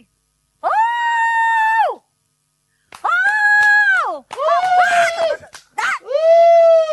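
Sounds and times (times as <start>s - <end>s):
woman's loud hooting call: 0.6s - 2.0s, 3.1s - 6.9s.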